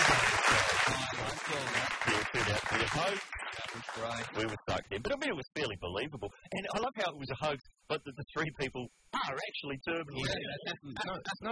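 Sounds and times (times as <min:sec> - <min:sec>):
applause: 0:00.0 - 0:04.8
speech: 0:02.8 - 0:11.5.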